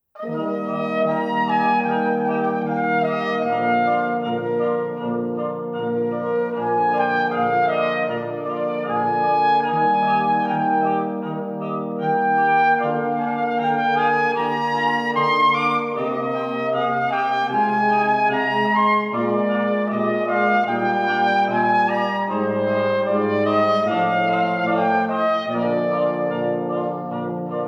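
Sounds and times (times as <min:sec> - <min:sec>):
slow brass music: 0:00.2 - 0:27.6.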